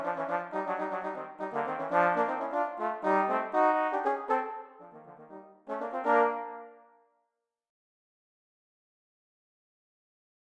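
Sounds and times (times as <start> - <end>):
Christmas song: 0.0 - 7.0.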